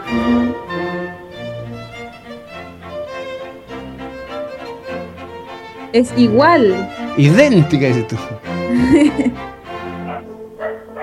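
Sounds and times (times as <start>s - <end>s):
music: 0.0s - 11.0s
speech: 0.1s - 0.6s, 5.9s - 9.6s
laughter: 7.2s - 9.4s
dog howling along to music: 10.0s - 11.0s.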